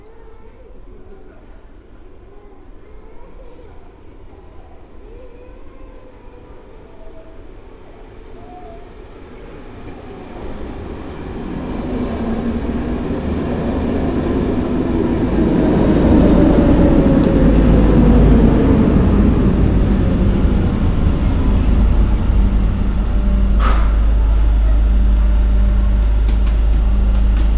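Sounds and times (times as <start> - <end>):
soundscape in Favoriten: 9.6 - 27.5.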